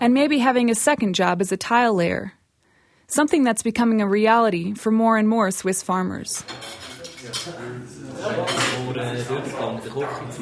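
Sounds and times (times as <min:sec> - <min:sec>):
speech: 0:00.0 - 0:02.4, 0:03.1 - 0:10.4
cutlery scraping and clinking against dishes during a meal: 0:06.4 - 0:10.4
several voices murmuring: 0:06.9 - 0:10.4.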